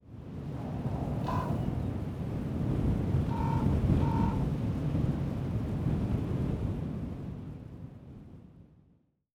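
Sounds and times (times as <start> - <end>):
wind: 0.0 - 6.8.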